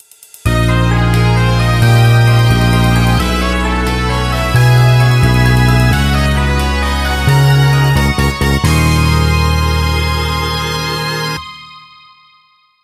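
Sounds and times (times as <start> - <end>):
course intro fanfare: 0.5 - 12.3.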